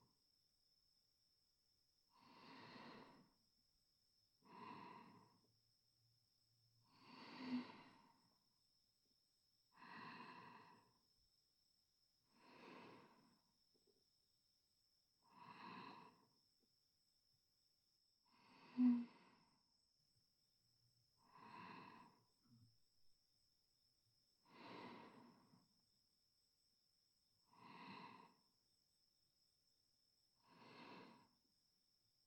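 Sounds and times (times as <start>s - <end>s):
sleeping breath: 2.2s - 3.4s, 4.5s - 5.4s, 6.9s - 8.4s, 9.8s - 11.0s, 12.3s - 13.4s, 15.2s - 16.3s, 18.3s - 19.6s, 21.3s - 22.3s, 24.5s - 25.6s, 27.5s - 28.5s, 30.4s - 31.4s.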